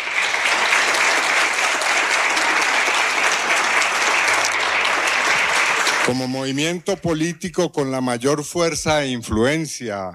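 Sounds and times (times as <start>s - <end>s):
audience applause: 0.0s - 7.2s
speech: 6.1s - 10.1s.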